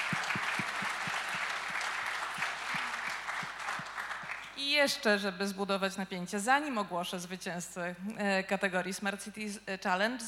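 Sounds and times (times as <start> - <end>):
audience applause: 0.0 - 4.6
speech: 4.6 - 10.2.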